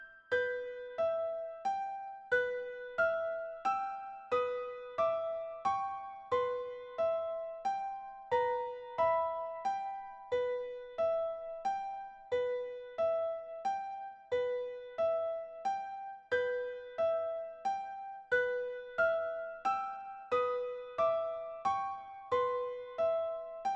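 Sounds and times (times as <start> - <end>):
computer-generated solo piano piece: 0.0 - 23.7.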